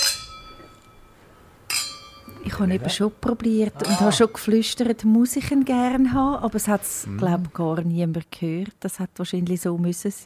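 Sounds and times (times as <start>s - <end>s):
wine glasses clinking: 0.0s - 2.6s, 3.8s - 4.6s
speech: 2.4s - 10.2s.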